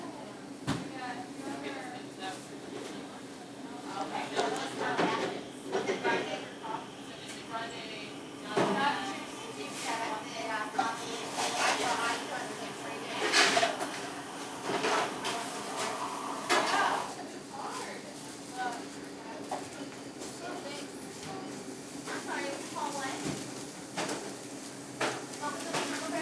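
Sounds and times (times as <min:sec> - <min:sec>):
coffee shop ambience: 0:00.0 - 0:26.2.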